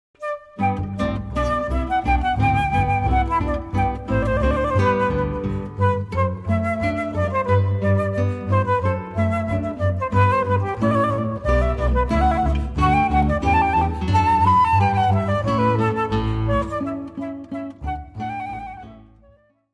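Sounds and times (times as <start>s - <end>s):
guitar in a trio: 0.2s - 19.5s
flute in a trio: 0.2s - 19.7s
bass in a trio: 0.6s - 19.3s.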